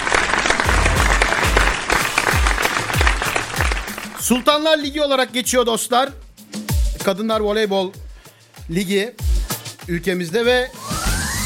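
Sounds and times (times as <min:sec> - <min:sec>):
applause for the Vakıfbank women's volleyball team: 0:00.0 - 0:04.4
low thumping beat: 0:00.6 - 0:10.8
speech: 0:04.3 - 0:06.2, 0:07.0 - 0:08.0, 0:08.7 - 0:09.3, 0:09.9 - 0:10.8.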